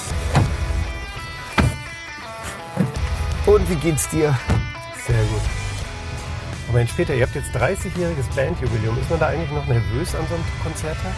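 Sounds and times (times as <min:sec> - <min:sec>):
car door thumps as someone gets into a car: 0:00.2 - 0:00.9, 0:01.5 - 0:02.0, 0:02.8 - 0:03.2, 0:04.4 - 0:04.8
speech: 0:03.5 - 0:05.6, 0:06.7 - 0:11.1.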